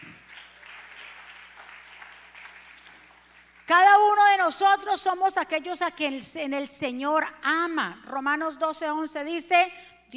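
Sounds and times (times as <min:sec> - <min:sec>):
audience applauding: 0:00.0 - 0:03.7
speech: 0:03.7 - 0:10.1.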